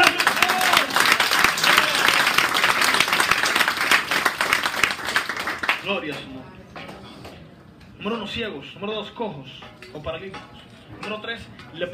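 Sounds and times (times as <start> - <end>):
loud audience applause: 0.0 - 5.9
speech: 5.9 - 6.6, 8.0 - 11.9.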